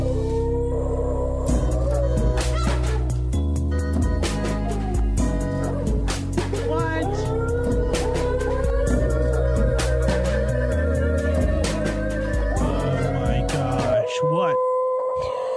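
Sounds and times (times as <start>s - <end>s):
bass and rhythmic backing: 0.0s - 14.0s
song made of dog sounds: 0.0s - 15.5s.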